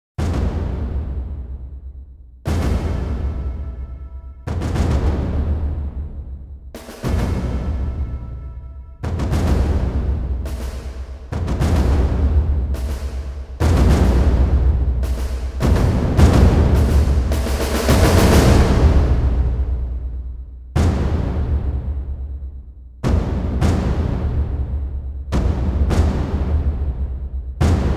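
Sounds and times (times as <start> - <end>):
percussion: 0.1 - 27.9.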